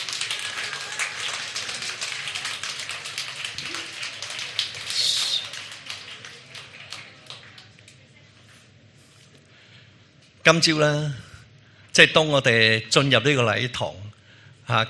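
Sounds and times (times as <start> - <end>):
audience applause for fathers: 0.0 - 7.8
speech: 10.5 - 11.2, 12.0 - 14.0, 14.7 - 14.8.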